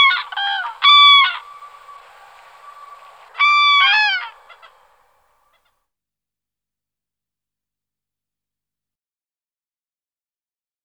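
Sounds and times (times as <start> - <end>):
common crane flock calling: 0.0 - 5.6.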